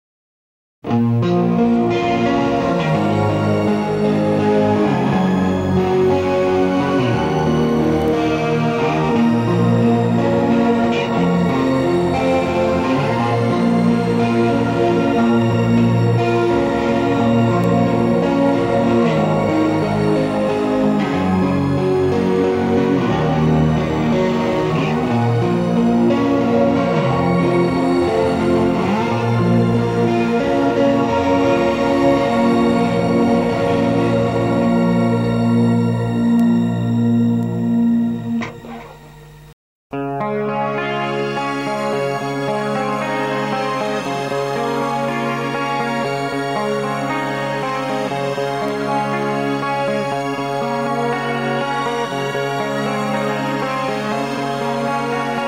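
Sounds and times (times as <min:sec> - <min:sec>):
shimmering guitar: 0:00.8 - 0:55.4.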